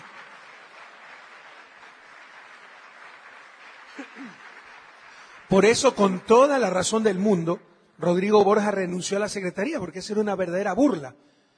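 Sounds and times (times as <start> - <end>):
audience applause: 0.0 - 6.8
speech: 4.0 - 4.5, 5.5 - 11.4.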